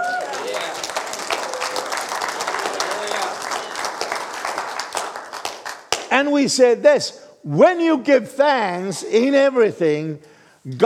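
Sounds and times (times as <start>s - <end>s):
audience clapping: 0.0s - 6.4s
speech: 6.2s - 10.8s.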